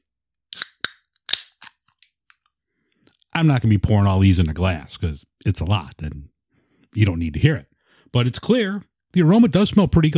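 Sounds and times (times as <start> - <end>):
can of hop water being cracked open: 0.5 - 1.8
speech: 3.4 - 6.3, 6.9 - 10.1.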